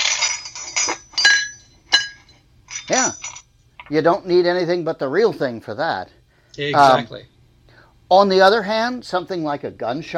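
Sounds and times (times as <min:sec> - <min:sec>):
clatter around a breakfast table: 0:00.0 - 0:03.4
speech: 0:03.9 - 0:07.3, 0:08.1 - 0:10.1.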